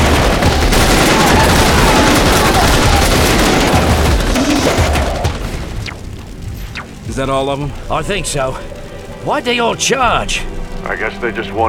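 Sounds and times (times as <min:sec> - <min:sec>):
volley of gunfire from a group shooting at charging attackers: 0:00.0 - 0:06.9
speech: 0:07.2 - 0:11.6.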